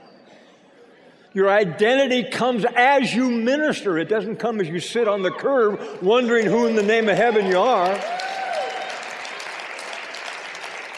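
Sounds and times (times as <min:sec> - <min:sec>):
speech: 0:01.3 - 0:08.2
audience clapping: 0:06.0 - 0:10.9.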